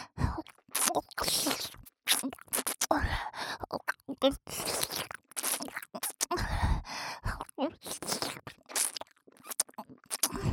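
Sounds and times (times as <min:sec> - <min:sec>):
ear licking on the left: 0:00.4 - 0:03.0, 0:03.7 - 0:06.3, 0:07.4 - 0:10.4.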